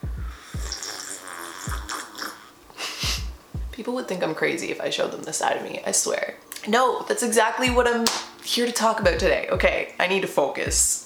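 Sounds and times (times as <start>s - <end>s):
person sipping tea: 0.3s - 2.9s
speech: 3.8s - 11.0s.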